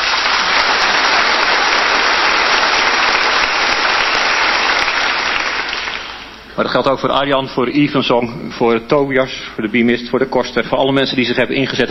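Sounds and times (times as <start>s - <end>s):
audience applause: 0.0s - 6.4s
speech: 6.6s - 11.8s.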